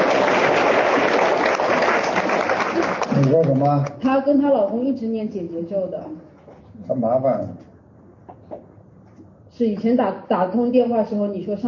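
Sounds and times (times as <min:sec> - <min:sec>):
audience clapping: 0:00.0 - 0:04.0
speech: 0:03.2 - 0:06.3, 0:06.9 - 0:07.6, 0:09.6 - 0:11.6.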